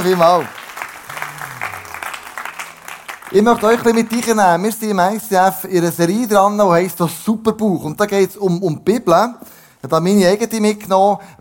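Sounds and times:
speech: 0:00.0 - 0:00.6, 0:03.3 - 0:11.3
audience applause: 0:00.0 - 0:04.7
laughter: 0:01.0 - 0:03.9.

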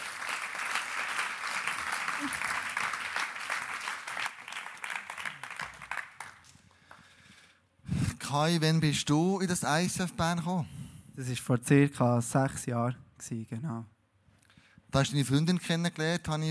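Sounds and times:
audience applause: 0:00.0 - 0:06.5
speech: 0:02.2 - 0:02.5, 0:08.3 - 0:13.9, 0:15.0 - 0:16.4.

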